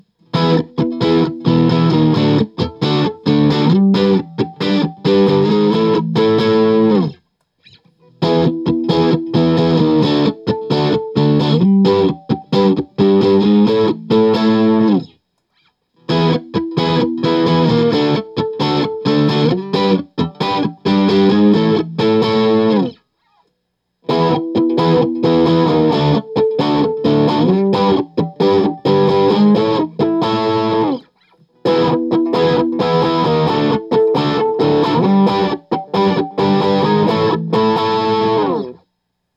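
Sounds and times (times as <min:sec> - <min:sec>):
Guild S284 electric guitar with EMG pickups through J800: 0:00.0 - 0:23.4, 0:24.0 - 0:38.8.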